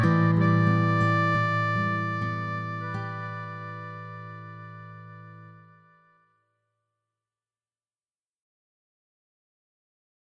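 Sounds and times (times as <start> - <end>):
harmonica: 0.0 - 6.1.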